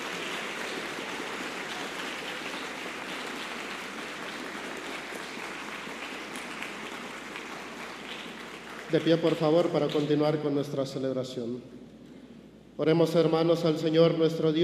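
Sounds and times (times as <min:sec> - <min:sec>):
audience applause: 0:00.0 - 0:10.1
speech: 0:08.9 - 0:11.8, 0:12.8 - 0:14.6.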